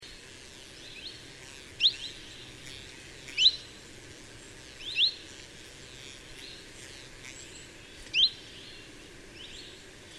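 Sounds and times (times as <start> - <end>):
Chiffchaff (Phylloscopus collybita) singing: 1.8 - 2.6, 3.3 - 3.8, 4.8 - 5.2, 7.2 - 9.8.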